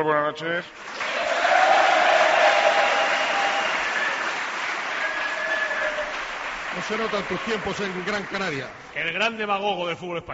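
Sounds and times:
speech: 0:00.0 - 0:01.0, 0:06.8 - 0:10.3
crowd applause: 0:00.8 - 0:08.9.

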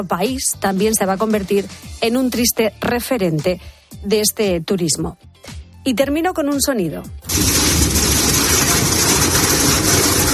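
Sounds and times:
speech: 0:00.0 - 0:07.7
heavy rain and hail falling: 0:07.3 - 0:10.3.

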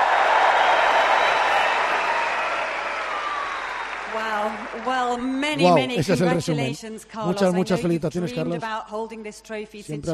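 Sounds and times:
ovation, crowd applauding: 0:00.0 - 0:06.4
speech: 0:05.2 - 0:10.1.

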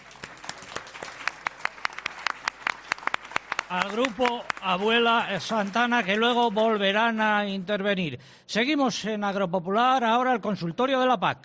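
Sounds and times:
light applause from a small audience for a music group: 0:00.0 - 0:07.7
speech: 0:03.7 - 0:11.4.

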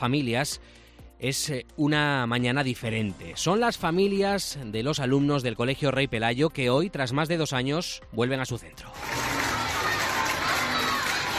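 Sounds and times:
speech: 0:00.0 - 0:09.3
crowd cheering and applauding schoolchildren of Colegio Rey Pelayo: 0:08.9 - 0:11.3
children shouting: 0:09.0 - 0:11.3.

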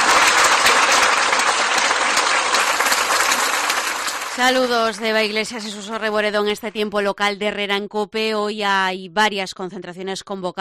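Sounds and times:
crowd applauding outside a bakery: 0:00.0 - 0:06.1
speech: 0:04.4 - 0:10.5.

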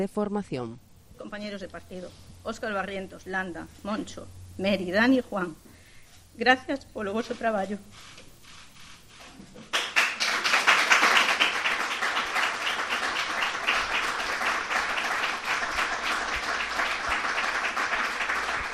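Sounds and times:
speech: 0:00.0 - 0:05.7, 0:06.4 - 0:08.2
applause from group members: 0:09.6 - 0:18.7.

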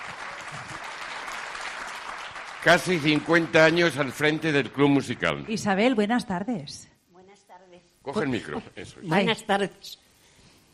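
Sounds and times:
audience applause: 0:00.0 - 0:05.6
speech: 0:02.6 - 0:06.9, 0:08.0 - 0:10.0.

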